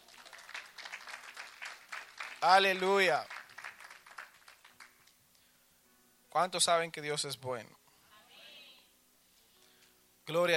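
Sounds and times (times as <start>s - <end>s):
applause: 0.0s - 5.4s
speech: 2.4s - 3.4s, 6.4s - 7.8s, 10.3s - 10.5s.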